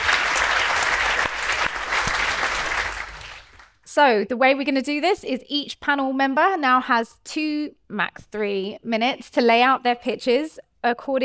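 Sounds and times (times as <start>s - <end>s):
audience applause welcoming a panel of speakers: 0.0s - 3.8s
speech: 4.0s - 11.2s.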